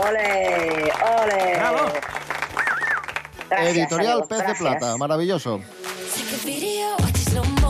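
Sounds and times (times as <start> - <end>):
speech: 0.0 - 2.2, 3.5 - 5.8, 6.4 - 7.6
audience applause: 0.0 - 4.1
cheers and whoops: 1.0 - 3.2.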